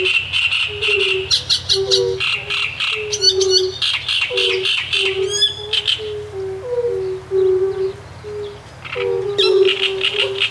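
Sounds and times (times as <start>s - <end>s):
great reed warbler singing: 0.0s - 10.5s.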